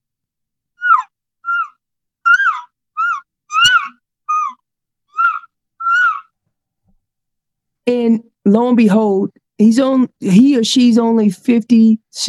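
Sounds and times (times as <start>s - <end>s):
imitated elk calf calling for its mother: 0.8s - 6.3s
speech: 7.9s - 12.2s.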